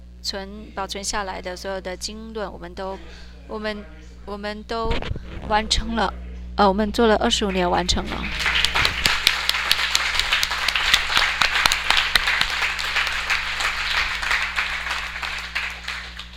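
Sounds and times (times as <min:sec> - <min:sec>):
speech: 0:00.2 - 0:08.5
audience applause: 0:08.2 - 0:16.3.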